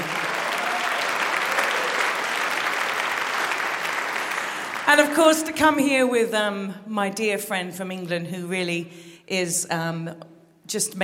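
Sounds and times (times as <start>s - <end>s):
audience clapping: 0.0s - 5.5s
speech: 4.9s - 11.0s.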